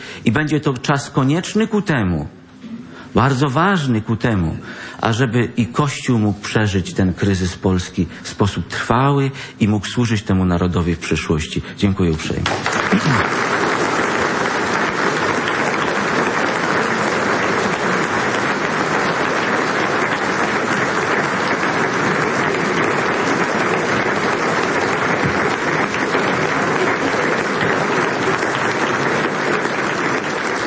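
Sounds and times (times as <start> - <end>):
speech: 0.2 - 2.4, 3.1 - 13.7
large audience applause after a lecture: 12.4 - 30.6.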